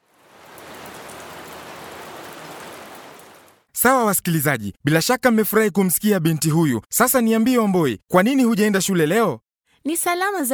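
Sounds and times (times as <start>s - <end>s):
heavy rain falling: 0.0s - 3.7s
speech: 3.8s - 10.5s.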